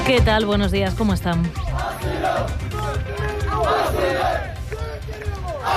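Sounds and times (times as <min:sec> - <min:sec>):
speech: 0:00.1 - 0:01.7
large crowd of migrants shouting on a beach: 0:01.5 - 0:05.7.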